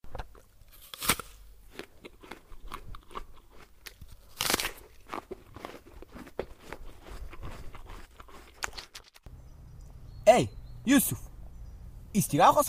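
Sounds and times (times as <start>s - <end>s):
biting and chewing sweet fruit: 0.1s - 9.3s
speech: 10.3s - 11.3s, 12.2s - 12.6s.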